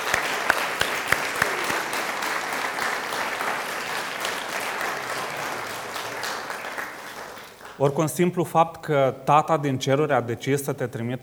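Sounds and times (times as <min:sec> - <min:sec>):
audience applauding: 0:00.0 - 0:07.8
speech: 0:07.8 - 0:11.2.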